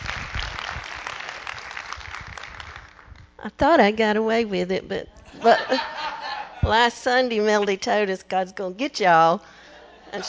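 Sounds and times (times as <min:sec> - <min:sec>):
crowd applause: 0:00.0 - 0:03.0
speech: 0:03.4 - 0:09.5
laughter: 0:05.2 - 0:06.7, 0:09.7 - 0:10.2.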